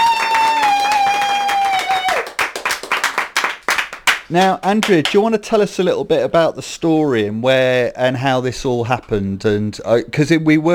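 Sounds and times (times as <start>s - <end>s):
audience applause: 0.0s - 4.9s
speech: 4.3s - 10.7s.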